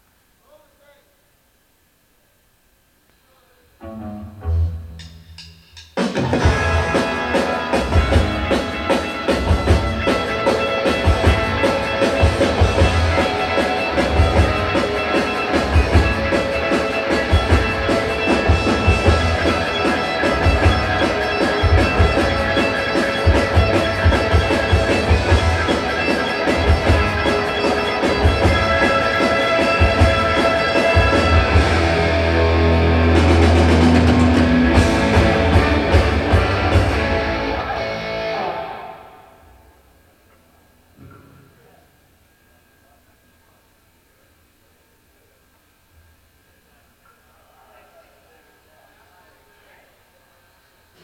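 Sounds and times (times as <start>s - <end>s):
soundcheck instrumental music: 3.8s - 39.3s.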